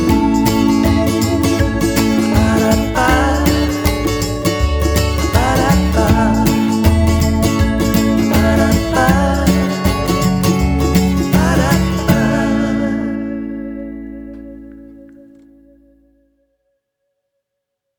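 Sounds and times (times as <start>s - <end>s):
fun acoustic voice: 0.0s - 15.8s.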